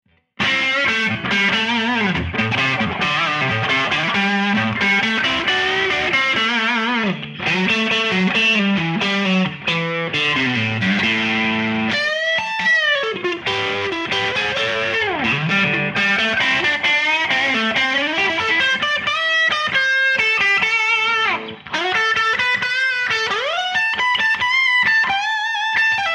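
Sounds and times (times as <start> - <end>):
distortion: 0.1 - 26.1.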